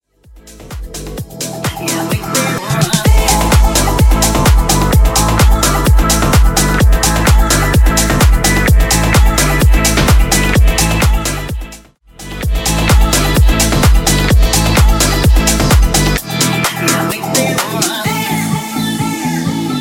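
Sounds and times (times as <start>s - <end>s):
house music: 0.1s - 19.8s.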